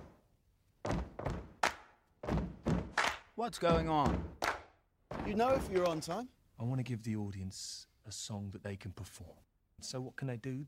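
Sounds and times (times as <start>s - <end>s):
foot stomping beat: 0.8s - 6.2s
hand clapping beat: 1.6s - 2.0s, 2.8s - 4.8s
speech: 3.4s - 4.4s, 5.2s - 10.6s.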